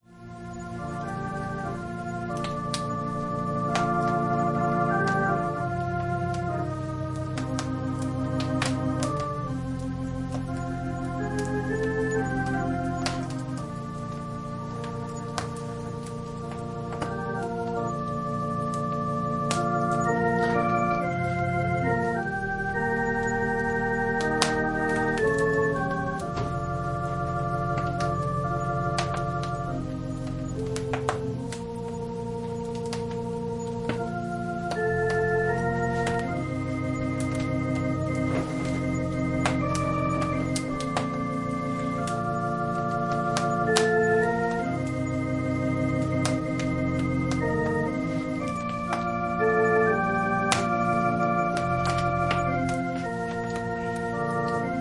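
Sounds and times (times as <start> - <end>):
organ playing a prelude: 0.0 - 54.8.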